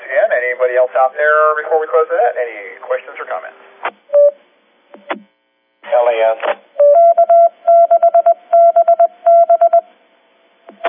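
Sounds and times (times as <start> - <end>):
speech: 0.6 - 4.0, 6.0 - 6.7
K6BB Morse code tones: 6.8 - 9.9.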